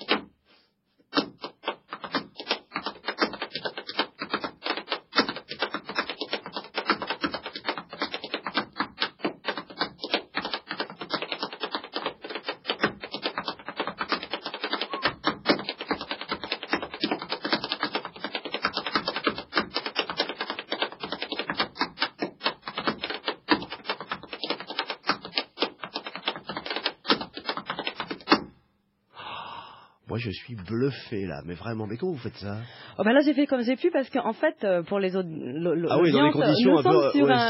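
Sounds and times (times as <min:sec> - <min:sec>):
tap dancing footsteps: 0:00.0 - 0:00.4, 0:01.1 - 0:28.6
speech: 0:30.2 - 0:37.4.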